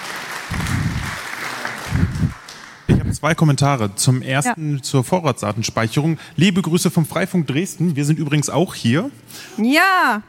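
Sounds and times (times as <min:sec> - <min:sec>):
audience applause: 0:00.0 - 0:03.2
speech: 0:03.2 - 0:10.2.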